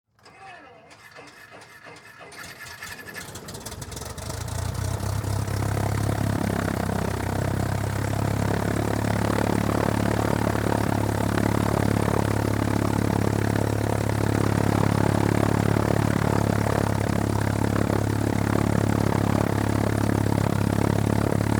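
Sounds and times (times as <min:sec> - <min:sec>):
Cessna propeller airplane starting, idling and taxiing: 0:00.9 - 0:21.5.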